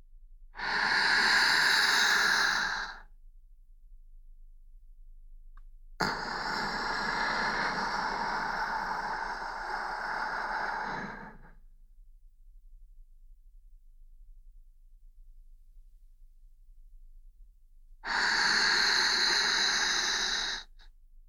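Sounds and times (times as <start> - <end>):
slow deep breath in: 0.6 - 3.1, 6.0 - 11.6, 18.0 - 20.9.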